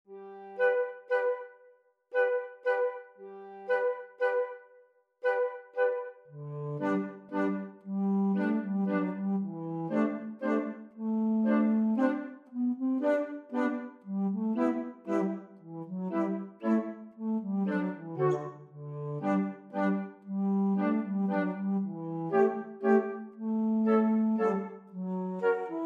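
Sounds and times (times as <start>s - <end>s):
flute: 0.1s - 25.8s.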